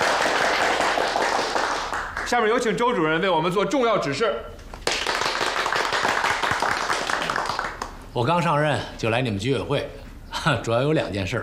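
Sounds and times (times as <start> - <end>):
welcoming group applause: 0.0 - 2.6, 4.8 - 8.0
speech: 2.3 - 4.5, 8.2 - 11.4.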